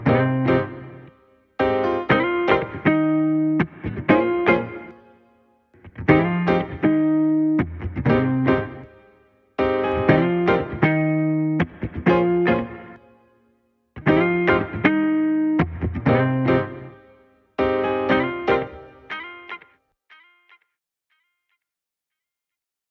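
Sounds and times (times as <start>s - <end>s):
keyboard: 0.0s - 5.2s, 5.8s - 13.2s, 14.0s - 19.6s
guitar: 0.0s - 21.3s.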